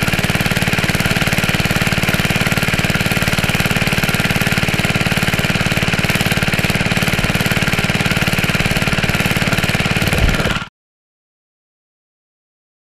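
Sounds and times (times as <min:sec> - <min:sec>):
two-stroke water pump pumping: 0:00.0 - 0:10.7.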